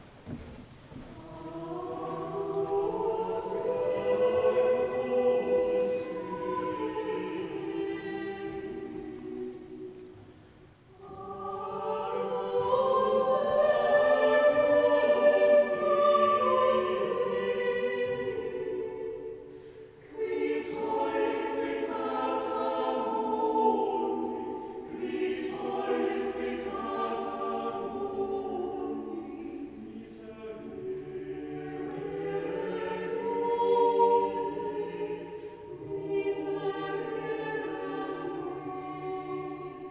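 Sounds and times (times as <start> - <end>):
church music ensemble: 0.0 - 39.9.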